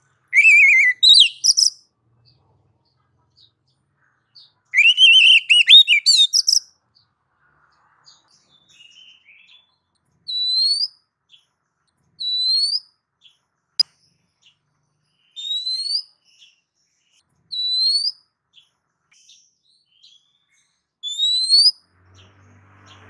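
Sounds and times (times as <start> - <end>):
female oriental magpie-robin calling to a male: 0.3 - 1.8, 4.8 - 6.6, 10.3 - 11.0, 12.2 - 12.9, 15.4 - 16.1, 17.5 - 18.2, 21.0 - 21.8.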